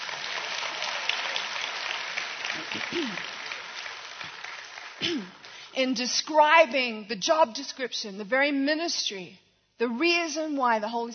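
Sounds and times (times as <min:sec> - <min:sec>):
audience clapping: 0:00.0 - 0:05.7
speech: 0:02.6 - 0:03.4, 0:05.0 - 0:11.1.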